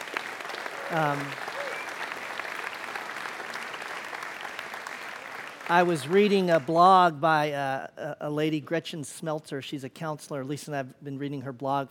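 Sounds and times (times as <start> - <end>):
audience clapping: 0.0 - 7.1
speech: 0.9 - 1.5, 5.7 - 11.8.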